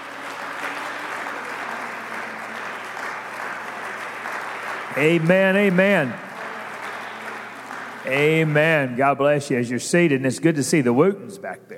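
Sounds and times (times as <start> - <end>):
audience clapping hands in praise: 0.0 - 9.3
speech: 5.0 - 6.3, 8.1 - 11.7.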